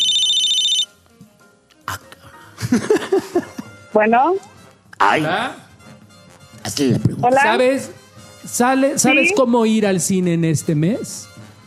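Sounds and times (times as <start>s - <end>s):
telephone ringing as a radio show calls a listener in Guadalajara: 0.0s - 0.9s
laughter: 2.6s - 3.7s
speech: 2.7s - 5.6s, 6.8s - 11.3s.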